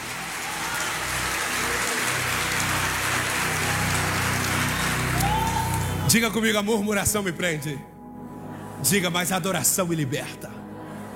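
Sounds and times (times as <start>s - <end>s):
audience applause: 0.0s - 6.2s
speech: 6.1s - 7.9s, 8.8s - 10.6s.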